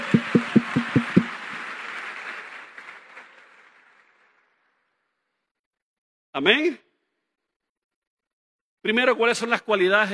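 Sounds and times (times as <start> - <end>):
men in audience applauding: 0.0 - 4.9
speech: 6.4 - 6.8, 8.8 - 10.1.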